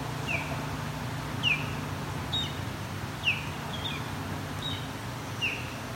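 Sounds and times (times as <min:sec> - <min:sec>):
osprey calls: 0:00.2 - 0:00.7, 0:01.4 - 0:02.6, 0:03.2 - 0:05.8.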